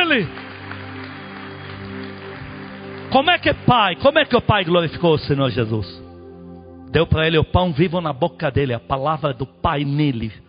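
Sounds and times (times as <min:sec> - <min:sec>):
audience applauding loudly: 0:00.0 - 0:04.8
speech: 0:00.1 - 0:00.4, 0:03.1 - 0:06.0, 0:06.9 - 0:10.4.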